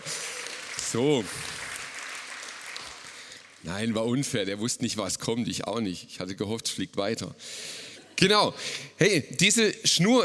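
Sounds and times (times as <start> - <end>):
audience applause: 0.0 - 3.9
speech: 0.9 - 1.6, 3.6 - 10.2.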